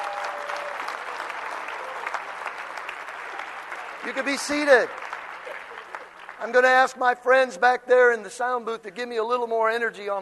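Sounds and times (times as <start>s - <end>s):
audience hand clapping: 0.0s - 7.1s
speech: 4.0s - 5.1s, 6.4s - 10.2s.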